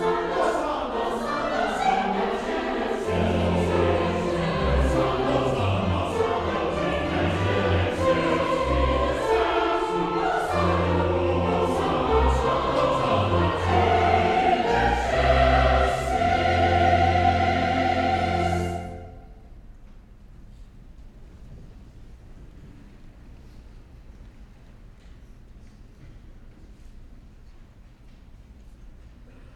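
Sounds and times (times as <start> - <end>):
chancel choir singing a mass: 0.0 - 19.4.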